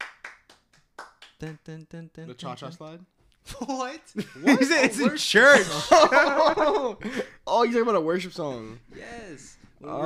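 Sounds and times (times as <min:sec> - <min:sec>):
hand clapping: 0:00.0 - 0:01.8
speech: 0:01.4 - 0:10.0
laughter: 0:04.2 - 0:07.3.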